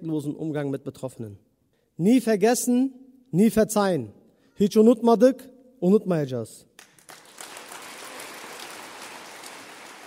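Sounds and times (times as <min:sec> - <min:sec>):
speech: 0:00.0 - 0:07.2
loud crowd applause after a speech: 0:07.0 - 0:10.0.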